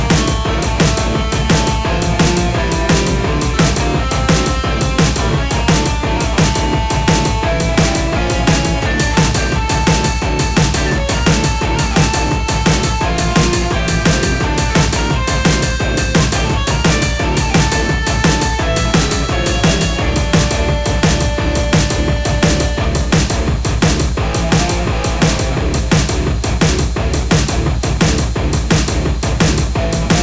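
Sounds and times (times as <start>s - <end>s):
metal-style distorted guitar: 0.0s - 30.2s.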